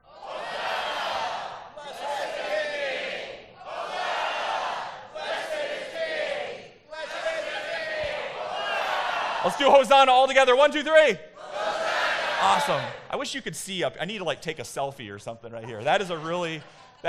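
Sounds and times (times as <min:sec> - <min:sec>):
audience shouting together: 0:00.0 - 0:09.6, 0:11.4 - 0:13.0
speech: 0:09.5 - 0:11.3, 0:12.4 - 0:17.0
laughter: 0:15.5 - 0:17.0.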